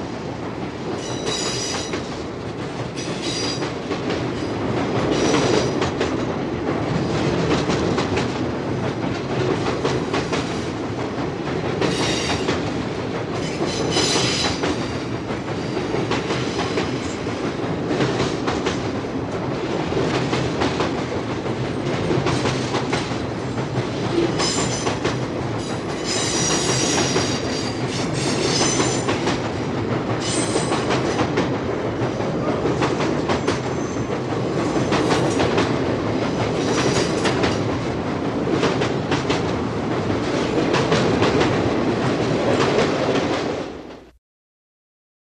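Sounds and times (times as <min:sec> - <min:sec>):
elevated train passing by: 0:00.0 - 0:44.2.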